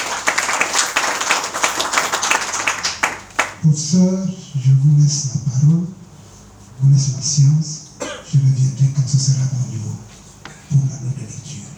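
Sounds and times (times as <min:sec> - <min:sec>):
audience applause: 0:00.0 - 0:03.6
speech: 0:03.6 - 0:06.0, 0:06.8 - 0:10.1, 0:10.7 - 0:11.7.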